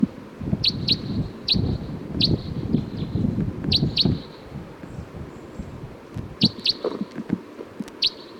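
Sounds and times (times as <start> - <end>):
low rustling rumbling background: 0.0 - 7.8
wild bird calling: 0.6 - 5.8, 6.4 - 7.2, 7.9 - 8.3.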